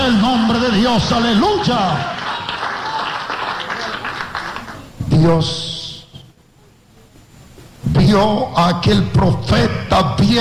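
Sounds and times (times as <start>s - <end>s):
audience applause: 0.0s - 5.0s
speech: 0.1s - 2.2s, 5.2s - 5.7s, 7.9s - 10.4s.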